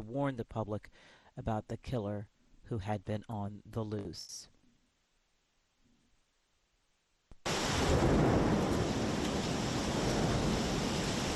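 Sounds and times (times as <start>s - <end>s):
speech: 0.0s - 4.5s
torrential rain in central Athens: 7.4s - 11.3s.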